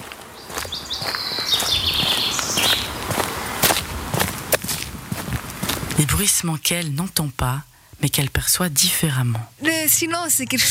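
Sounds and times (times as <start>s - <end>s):
birds chirping: 0.0s - 3.6s
footsteps of a walker crunching outdoors: 0.0s - 7.3s
outdoor ambience: 0.0s - 10.7s
speech: 6.0s - 10.7s.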